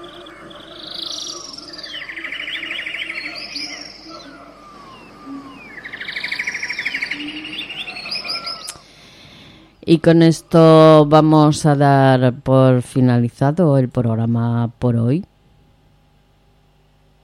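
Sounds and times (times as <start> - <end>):
wild birds singing: 0.0 - 11.5
speech: 9.9 - 15.3.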